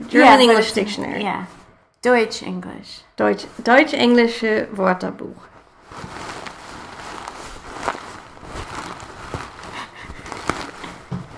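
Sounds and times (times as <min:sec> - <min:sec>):
speech: 0:00.1 - 0:06.2
cushion stuffed with shredded paper being squished: 0:05.7 - 0:11.3.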